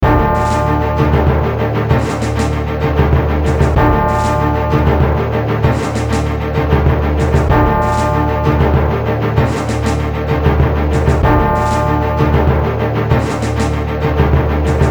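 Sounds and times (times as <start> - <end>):
pinball game pre-launch music: 0.0 - 14.8.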